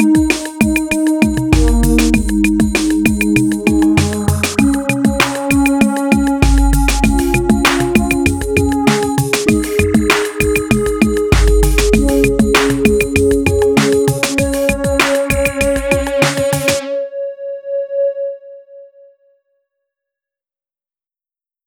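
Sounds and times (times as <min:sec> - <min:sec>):
drum machine and synthesizer: 0:00.0 - 0:16.8.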